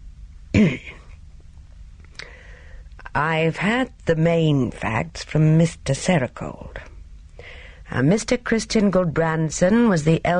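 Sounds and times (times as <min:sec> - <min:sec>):
man clearing throat: 0:00.5 - 0:01.1
speech: 0:00.6 - 0:01.0, 0:03.2 - 0:10.3.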